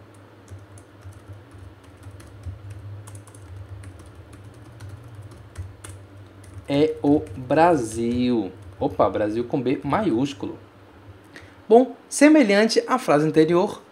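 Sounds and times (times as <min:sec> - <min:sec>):
typing on a computer keyboard: 0:00.0 - 0:09.2
low hum: 0:00.0 - 0:13.9
speech: 0:06.7 - 0:10.6, 0:11.7 - 0:13.8.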